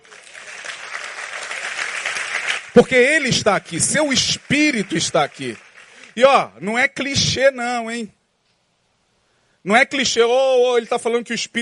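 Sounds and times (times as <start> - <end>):
audience applause: 0.0 - 6.3
speech: 2.8 - 8.2, 9.6 - 11.6.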